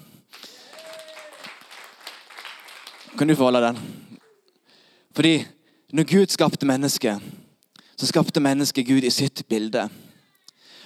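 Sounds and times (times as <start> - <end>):
audience applause: 0.3 - 4.4
speech: 3.1 - 4.0, 5.2 - 7.4, 8.0 - 10.0.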